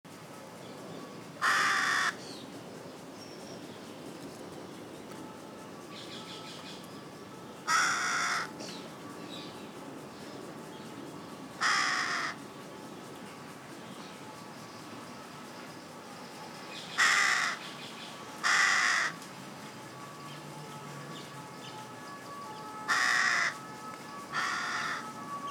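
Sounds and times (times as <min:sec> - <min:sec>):
Carrion crow Corvus corone giving harsh grating caws: 0:01.4 - 0:02.2, 0:07.7 - 0:08.5, 0:11.6 - 0:12.4, 0:17.0 - 0:17.6, 0:18.4 - 0:19.2, 0:22.9 - 0:23.7, 0:24.3 - 0:25.1.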